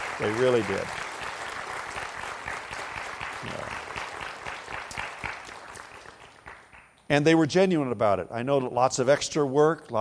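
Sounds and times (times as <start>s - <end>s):
students applauding: 0.0s - 7.0s
speech: 0.2s - 1.1s, 3.4s - 3.8s, 7.1s - 10.0s.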